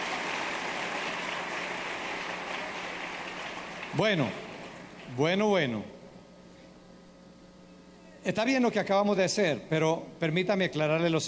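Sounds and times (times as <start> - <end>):
audience applause: 0.0 - 5.1
speech: 3.9 - 4.4, 5.1 - 6.0, 8.2 - 11.2.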